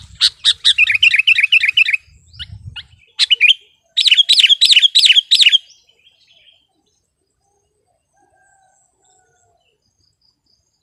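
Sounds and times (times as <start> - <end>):
Sooty-headed bulbul song: 0.0 - 6.7.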